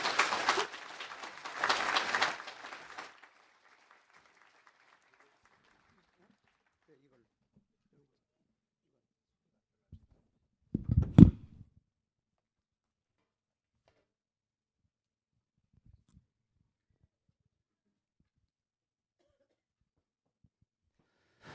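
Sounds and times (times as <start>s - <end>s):
audience applauding in welcome: 0.0s - 7.0s.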